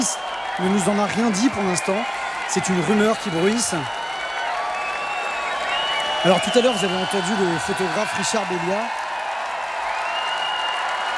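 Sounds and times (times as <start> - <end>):
speech: 0.0 - 4.0, 6.2 - 9.0
high gliding whistle: 0.0 - 8.6
festival crowd of 40,000 cheering and applauding at a concert: 0.0 - 11.1.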